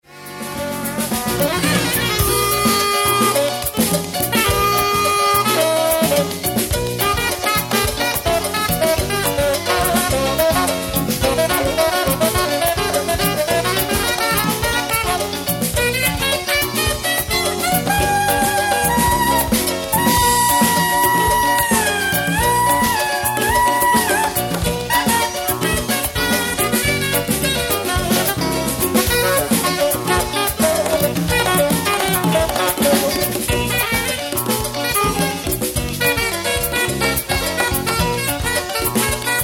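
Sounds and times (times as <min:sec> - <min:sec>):
New Orleans solo: 0:00.4 - 0:39.4.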